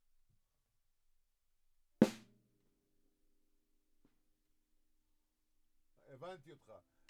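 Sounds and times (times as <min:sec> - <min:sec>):
drums: 0:02.0 - 0:02.3.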